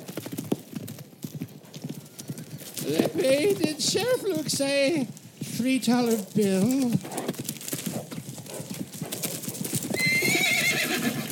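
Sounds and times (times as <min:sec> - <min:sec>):
horse hooves clip-clopping: 0:00.0 - 0:11.3
horse whinnying: 0:02.0 - 0:04.4, 0:09.8 - 0:11.3
speech: 0:02.9 - 0:07.4.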